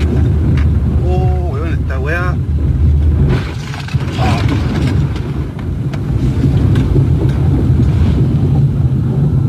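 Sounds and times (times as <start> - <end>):
rushing floodwater: 0.0 - 9.4
pickup truck knocking and clattering as it is swept along: 2.9 - 8.7.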